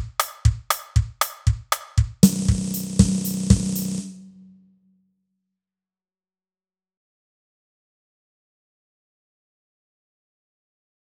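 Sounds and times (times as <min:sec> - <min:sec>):
norteño drum kit: 0:00.0 - 0:04.6.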